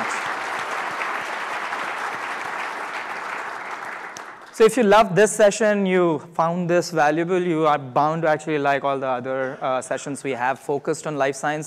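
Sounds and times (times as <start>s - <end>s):
audience applause: 0.0s - 4.6s
speech: 4.6s - 11.6s.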